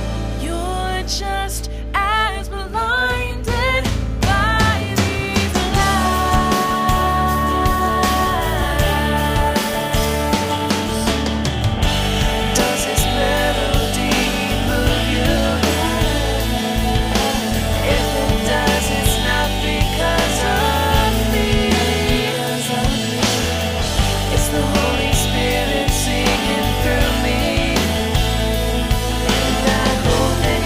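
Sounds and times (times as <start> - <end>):
choir of two voices singing: 0.0 - 30.6.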